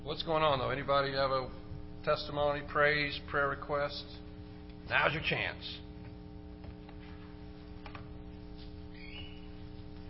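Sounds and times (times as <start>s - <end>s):
speech: 0.1s - 4.2s, 4.9s - 5.8s
bird chirping indoors: 8.9s - 9.6s.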